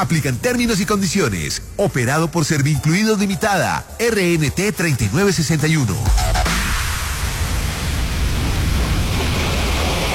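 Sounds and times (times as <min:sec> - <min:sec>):
speech: 0:00.0 - 0:06.4
ocean waves at beach: 0:06.2 - 0:10.1.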